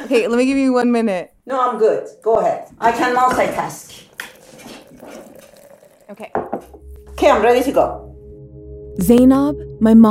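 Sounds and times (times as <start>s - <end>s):
speech: 0.1s - 5.3s, 6.1s - 8.1s, 9.0s - 10.0s
pouring coffee: 4.0s - 7.1s.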